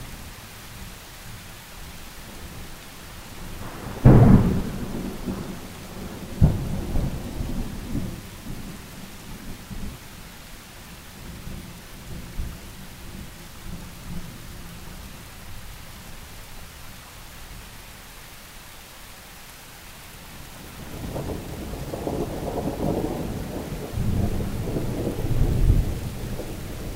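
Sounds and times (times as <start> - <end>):
thunder: 3.6 - 8.7, 20.8 - 26.9.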